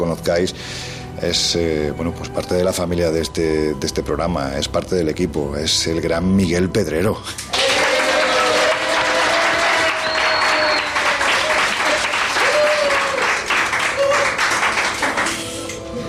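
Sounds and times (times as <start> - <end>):
speech: 0.1 - 7.5
applause: 7.3 - 15.8.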